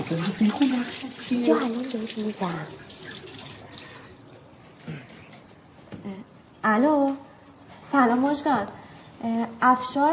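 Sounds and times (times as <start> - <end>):
speech: 0.0 - 3.0, 6.0 - 7.3, 7.9 - 10.1
water running from a tap while washing hands: 0.0 - 4.3.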